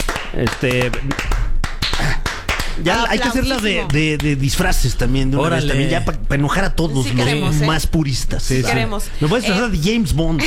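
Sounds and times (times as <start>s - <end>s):
hand claps in a radio studio: 0.0s - 4.5s
speech: 0.4s - 1.4s, 2.8s - 10.4s.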